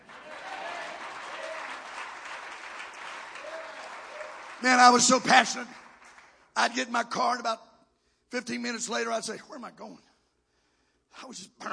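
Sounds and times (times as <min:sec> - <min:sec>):
audience clapping hands: 0:00.0 - 0:06.9
speech: 0:04.6 - 0:05.8, 0:06.6 - 0:07.7, 0:08.3 - 0:10.1, 0:11.1 - 0:11.7.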